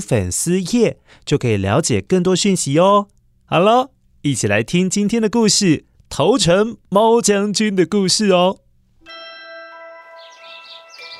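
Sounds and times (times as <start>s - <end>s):
speech: 0.0s - 9.2s
sparrows chirping outside window: 10.0s - 11.1s.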